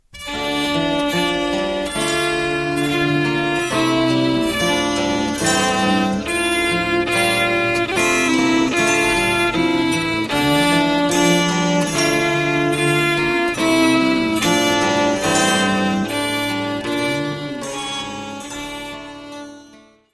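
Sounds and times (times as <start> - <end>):
French branle dance music: 0.2 - 19.7.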